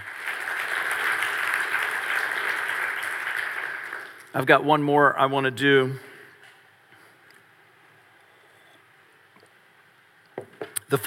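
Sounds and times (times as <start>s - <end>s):
crowd clapping: 0.0s - 4.8s
speech: 4.4s - 6.1s.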